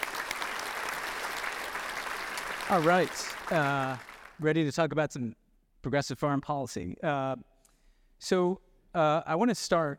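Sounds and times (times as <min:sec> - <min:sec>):
audience applause: 0:00.0 - 0:04.4
speech: 0:02.7 - 0:07.5, 0:08.2 - 0:09.9.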